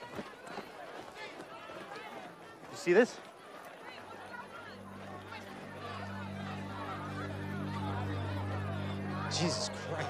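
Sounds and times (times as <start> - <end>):
agitated crowd of parishioners arguing near a pavilion: 0.0 - 10.0
speech: 2.8 - 3.3
low hum: 4.6 - 10.0.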